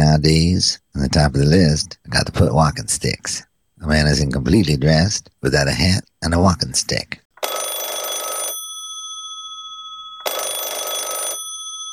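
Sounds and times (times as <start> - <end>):
speech: 0.2 - 7.8
telephone ringing for a caller on a radio call-in show: 7.4 - 11.9.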